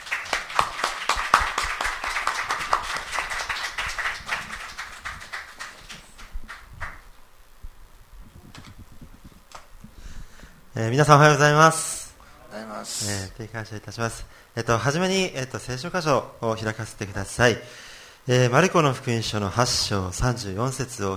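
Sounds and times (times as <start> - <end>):
church congregation applauding to welcome the pastor at a Sunday morning service: 0.0 - 7.2
speech: 10.8 - 11.9, 13.0 - 21.1.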